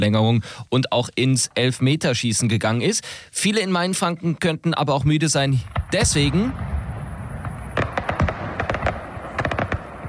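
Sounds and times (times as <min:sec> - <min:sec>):
speech: 0:00.0 - 0:06.8
festival opening fireworks display: 0:05.0 - 0:10.0.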